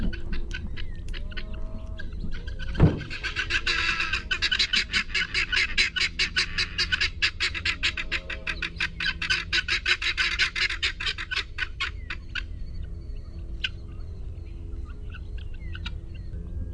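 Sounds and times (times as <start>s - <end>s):
guinea fowl calling: 0.0s - 12.9s
low background rumble: 0.0s - 16.7s.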